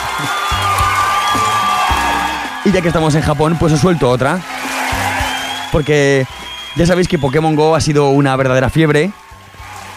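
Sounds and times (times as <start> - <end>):
applause: 0.0 - 9.9
speech: 0.2 - 0.4, 2.7 - 4.6, 5.7 - 9.2.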